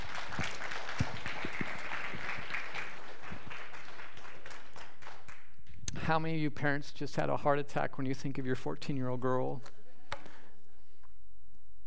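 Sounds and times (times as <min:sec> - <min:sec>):
crowd applause: 0:00.0 - 0:05.4
speech: 0:06.1 - 0:09.8.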